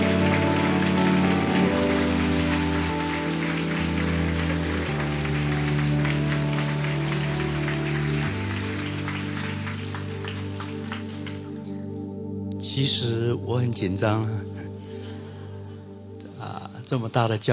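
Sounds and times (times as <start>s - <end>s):
warm applause from church audience: 0.0s - 11.8s
speech: 12.8s - 14.5s, 16.9s - 17.5s.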